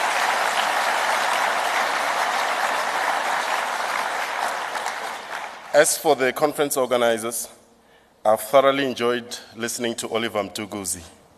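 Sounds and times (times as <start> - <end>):
audience clapping hands: 0.0 - 6.2
speech: 5.8 - 7.6, 8.2 - 11.2.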